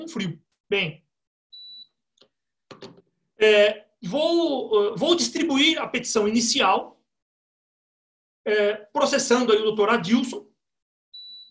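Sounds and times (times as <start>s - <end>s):
speech: 0.0s - 1.0s, 2.8s - 7.0s, 8.4s - 10.5s
high-pitched electronic beep from an air conditioner: 1.6s - 2.0s, 11.2s - 11.4s.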